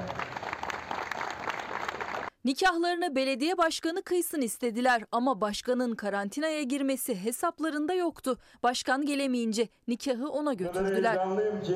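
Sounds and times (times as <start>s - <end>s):
crowd clapping: 0.0s - 2.3s
speech: 2.4s - 11.7s.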